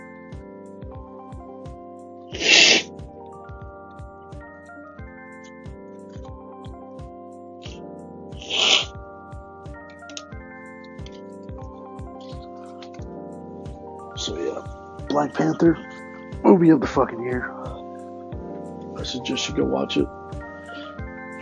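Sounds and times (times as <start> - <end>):
quiet music with steady plucked notes: 0.0 - 21.4
person blowing nose: 2.3 - 3.0, 8.4 - 9.0
speech: 14.3 - 17.6, 19.0 - 20.2.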